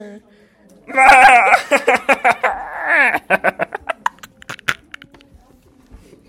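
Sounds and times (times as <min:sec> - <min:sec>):
person laughing: 0:00.9 - 0:05.0.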